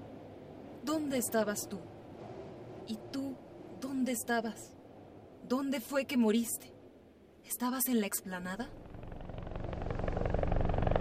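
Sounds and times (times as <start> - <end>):
speech: 0.9 - 2.0, 2.9 - 4.8, 5.4 - 6.7, 7.4 - 8.8
helicopter flying overhead: 8.7 - 11.0.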